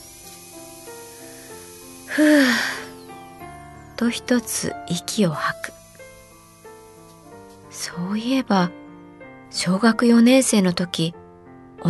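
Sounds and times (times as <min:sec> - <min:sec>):
dentist's drill hissing water spray: 0:00.0 - 0:03.5, 0:04.2 - 0:07.9
dentist's drill whirring: 0:00.0 - 0:08.6
speech: 0:02.1 - 0:02.7, 0:04.0 - 0:05.8, 0:07.8 - 0:08.8, 0:09.5 - 0:11.2.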